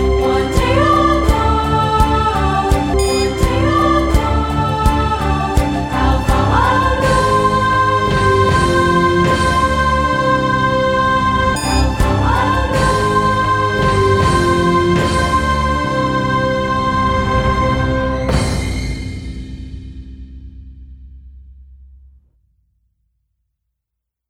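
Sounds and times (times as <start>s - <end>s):
echo track chorus: 0.0s - 18.8s.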